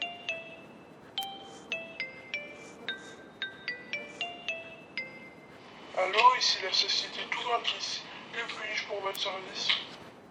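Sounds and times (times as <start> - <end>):
telephone ringing: 0.0 - 5.6
faint hiss: 0.0 - 10.2
speech: 6.1 - 10.0.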